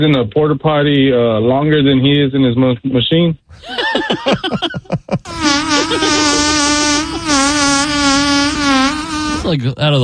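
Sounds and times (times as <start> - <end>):
speech: 0.0 - 8.8, 9.4 - 10.0
laughter: 3.5 - 7.5
long rasping fart: 5.2 - 9.6.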